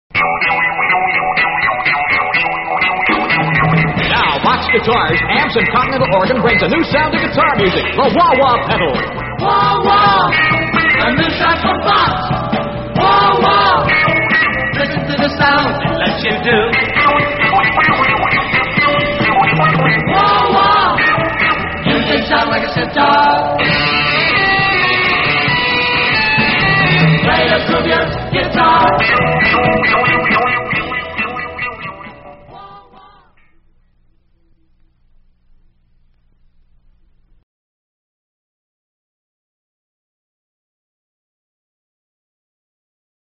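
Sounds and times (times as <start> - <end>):
Vox wah-wah guitar effect: 0.1 - 33.8.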